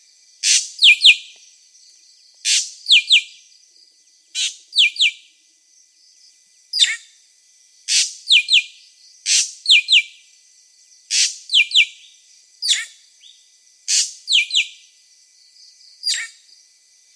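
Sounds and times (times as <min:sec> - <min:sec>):
drongo singing harsh buzzy notes and double chips: 0:00.0 - 0:01.4, 0:02.4 - 0:03.5, 0:07.8 - 0:10.2, 0:11.0 - 0:14.9, 0:15.9 - 0:16.5.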